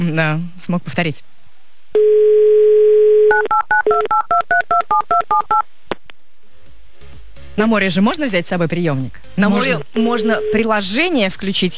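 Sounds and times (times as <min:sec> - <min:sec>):
speech: 0:00.0 - 0:01.4, 0:02.0 - 0:02.6, 0:03.3 - 0:05.7, 0:07.6 - 0:11.7
touch-tone dialing beeps: 0:02.0 - 0:05.6.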